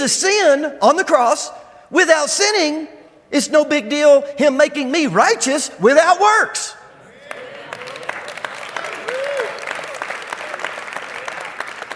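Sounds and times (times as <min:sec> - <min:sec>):
speech: 0:00.0 - 0:06.8
audience clapping: 0:07.2 - 0:11.9.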